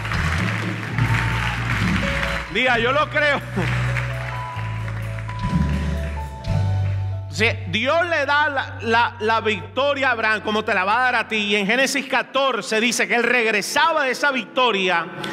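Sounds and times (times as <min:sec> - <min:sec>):
applause: 0:00.0 - 0:07.2
speech: 0:02.6 - 0:03.8, 0:07.4 - 0:15.3.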